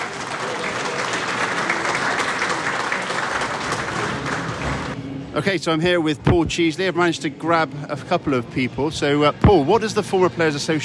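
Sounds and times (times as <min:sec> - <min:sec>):
applause: 0:00.0 - 0:05.0
speech: 0:05.4 - 0:10.8.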